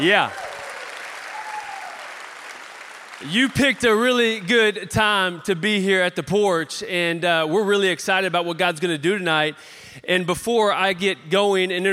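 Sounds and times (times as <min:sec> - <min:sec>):
speech: 0:00.0 - 0:00.4, 0:03.2 - 0:11.9
audience applause at a church gathering: 0:00.0 - 0:04.4.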